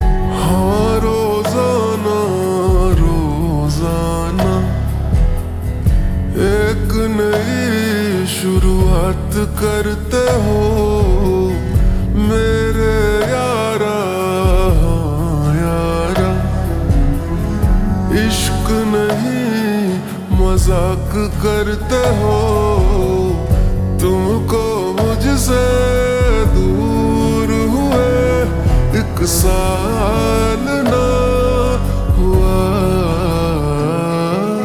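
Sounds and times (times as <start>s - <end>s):
slowed reverb music: 0.0s - 34.6s.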